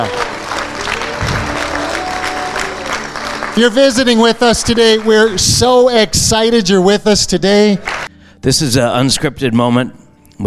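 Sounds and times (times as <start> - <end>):
speech: 0.0 - 0.2, 3.6 - 10.4
audience clapping: 0.0 - 6.0, 7.7 - 8.1.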